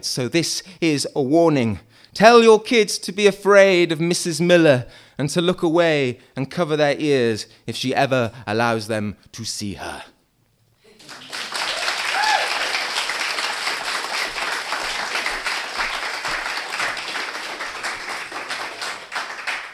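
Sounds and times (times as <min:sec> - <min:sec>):
speech: 0:00.0 - 0:10.1
audience applause for performers at a live arts evening show: 0:10.9 - 0:19.7.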